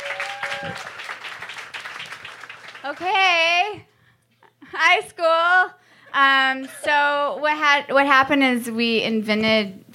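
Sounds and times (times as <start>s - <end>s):
audience applause: 0.0s - 3.4s
speech: 0.6s - 1.0s, 2.8s - 3.9s, 4.8s - 9.9s.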